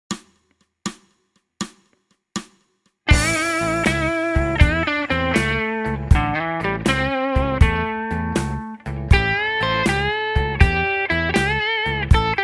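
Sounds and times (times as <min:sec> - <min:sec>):
blues music: 0:03.1 - 0:12.4.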